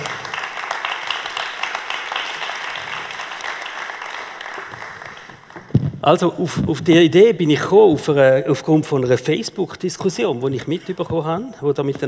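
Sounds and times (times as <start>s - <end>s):
audience applause: 0.0s - 5.7s
speech: 6.0s - 12.0s.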